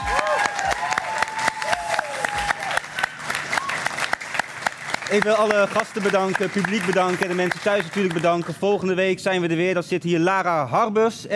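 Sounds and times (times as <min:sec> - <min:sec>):
audience applause: 0:00.0 - 0:08.7
speech: 0:05.1 - 0:11.3.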